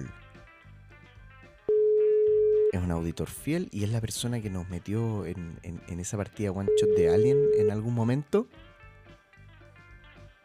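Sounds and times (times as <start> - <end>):
telephone ringing tone on an outgoing call: 1.7 - 2.9, 6.7 - 7.9
speech: 2.8 - 8.7.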